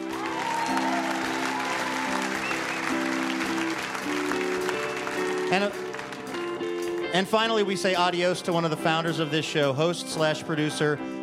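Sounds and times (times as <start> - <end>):
audience applause: 0.0 - 7.1
speech: 5.5 - 5.8, 7.1 - 11.1.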